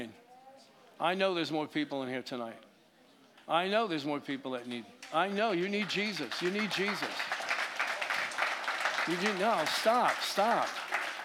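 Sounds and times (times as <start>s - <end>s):
speech: 1.0s - 2.7s, 3.5s - 7.4s, 9.1s - 10.8s
audience clapping: 5.0s - 11.2s.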